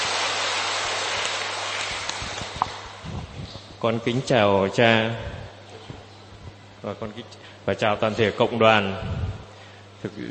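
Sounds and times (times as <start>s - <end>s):
audience applause: 0.0s - 2.8s
speech: 3.8s - 5.4s, 6.8s - 9.2s, 10.0s - 10.3s.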